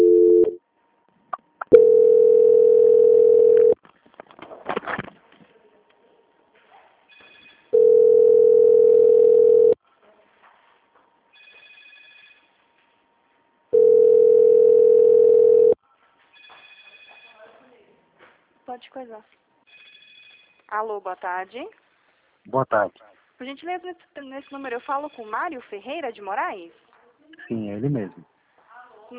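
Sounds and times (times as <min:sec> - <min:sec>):
telephone line tones during a customer-service call transfer: 0:00.0 - 0:00.6, 0:01.7 - 0:03.8, 0:07.2 - 0:09.8, 0:13.7 - 0:15.8
speech: 0:19.0 - 0:19.5, 0:20.7 - 0:21.8, 0:22.4 - 0:28.3.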